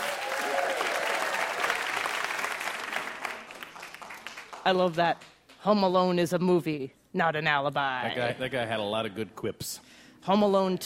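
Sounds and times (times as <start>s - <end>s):
audience applause: 0.0s - 4.9s
speech: 4.7s - 10.8s.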